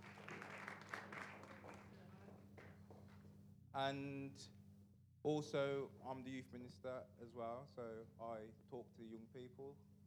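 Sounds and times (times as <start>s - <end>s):
audience clapping: 0.0s - 2.7s
speech: 3.7s - 4.6s, 5.2s - 9.9s.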